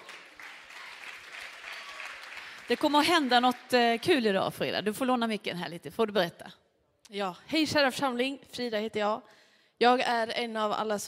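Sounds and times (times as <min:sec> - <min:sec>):
audience applauding: 0:00.0 - 0:03.8
speech: 0:02.7 - 0:11.0.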